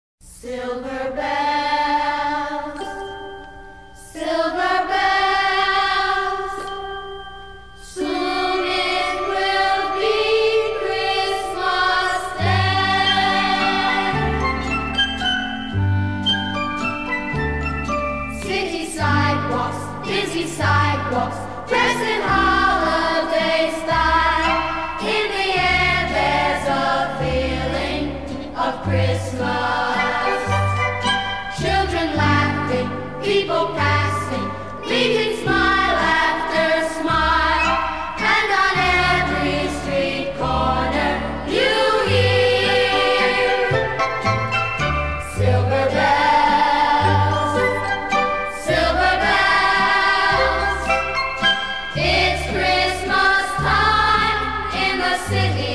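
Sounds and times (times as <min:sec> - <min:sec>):
children's vocal group singing: 0:00.4 - 0:02.9, 0:04.1 - 0:06.8, 0:07.8 - 0:15.4, 0:18.4 - 0:44.3, 0:45.3 - 0:55.7
band playing: 0:08.0 - 0:55.5.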